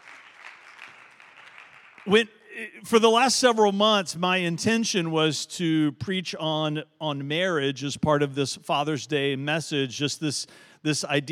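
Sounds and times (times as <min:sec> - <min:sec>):
audience clapping: 0:00.0 - 0:02.3
speech: 0:02.0 - 0:11.3.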